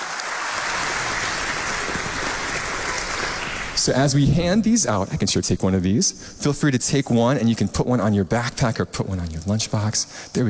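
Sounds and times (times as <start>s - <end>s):
crowd applause: 0.0s - 4.3s
speech: 3.9s - 10.4s.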